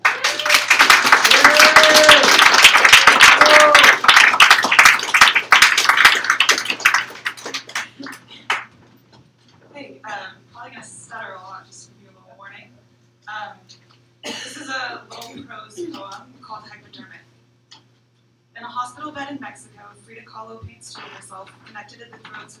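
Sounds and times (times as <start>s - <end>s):
audience applause at a poetry reading: 0.0s - 8.7s.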